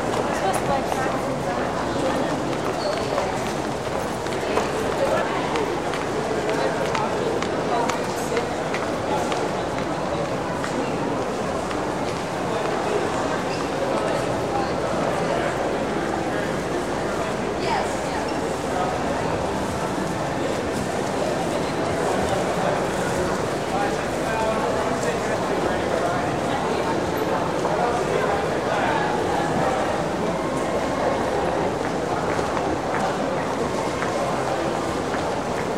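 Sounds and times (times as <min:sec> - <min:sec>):
indoor shopping mall general ambience: 0:00.0 - 0:35.7.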